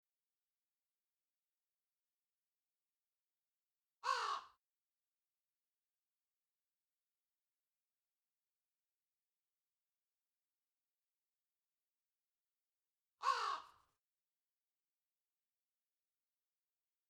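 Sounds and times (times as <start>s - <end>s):
crow cawing: 4.0s - 4.6s, 13.2s - 13.9s.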